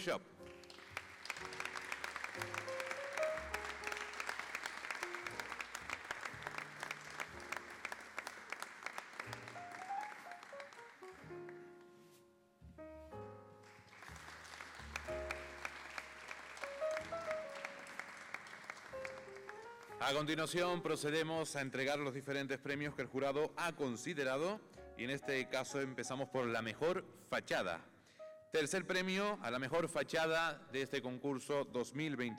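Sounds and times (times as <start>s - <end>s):
speech: 0.0s - 0.5s, 2.4s - 2.7s, 20.0s - 27.9s, 28.5s - 32.3s
applause: 0.0s - 11.7s, 13.6s - 20.5s.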